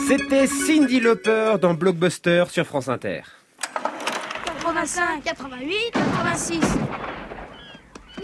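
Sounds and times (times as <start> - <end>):
speech: 0.1 - 3.4, 4.8 - 7.1
gunshots: 5.9 - 7.7.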